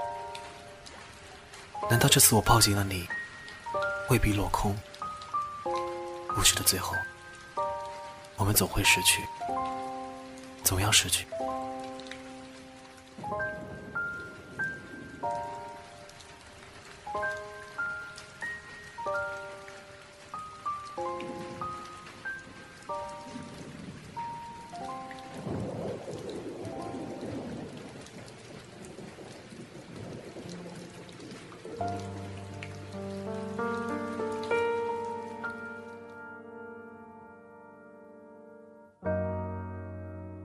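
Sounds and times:
rain falling: 0.0s - 37.4s
speech: 1.8s - 4.9s, 6.4s - 7.1s, 8.4s - 9.5s, 10.7s - 11.4s.

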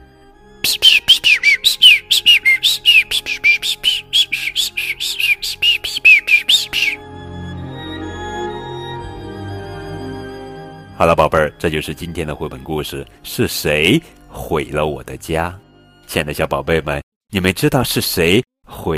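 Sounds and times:
speech: 0.6s - 1.5s, 11.0s - 18.9s
small birds chirping and singing: 0.7s - 7.0s.

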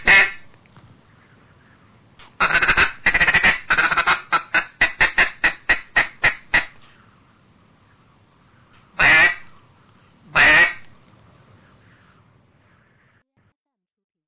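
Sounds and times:
Eastern Spot-billed Duck quacking: 0.0s - 0.4s, 2.4s - 6.8s, 9.0s - 9.5s, 10.3s - 10.8s.

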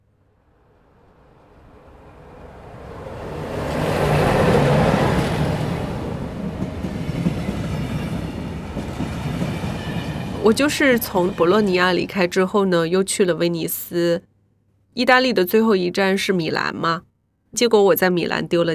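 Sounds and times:
train rumbling along the tracks at railway station: 0.6s - 12.5s
speech: 10.5s - 14.3s, 15.0s - 18.7s.

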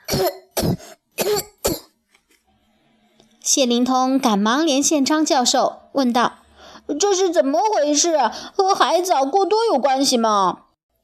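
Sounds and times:
crabs and lobsters coughing: 0.0s - 2.0s
speech: 0.2s - 0.8s, 3.5s - 10.6s.

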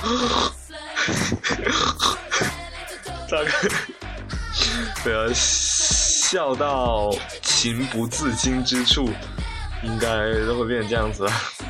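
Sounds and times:
speech: 0.0s - 2.1s, 3.3s - 4.0s, 4.8s - 11.6s
person imitating a pig grunt while laughing: 0.0s - 2.5s.

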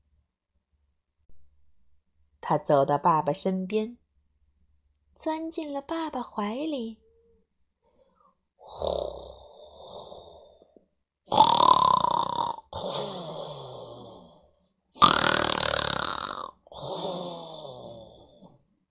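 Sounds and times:
speech: 2.5s - 4.0s, 5.2s - 7.0s, 8.7s - 9.0s
loud snoring: 8.6s - 18.6s.

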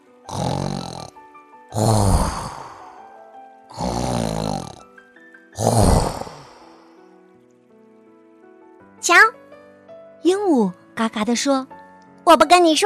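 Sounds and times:
hippo snoring: 0.3s - 3.1s, 3.7s - 4.9s, 5.6s - 7.0s
speech: 11.2s - 12.8s.

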